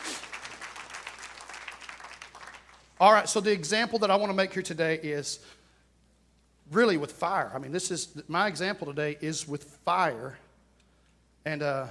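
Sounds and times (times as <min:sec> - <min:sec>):
audience applause: 0:00.0 - 0:03.0
speech: 0:03.0 - 0:05.6, 0:06.7 - 0:10.4, 0:11.4 - 0:11.9.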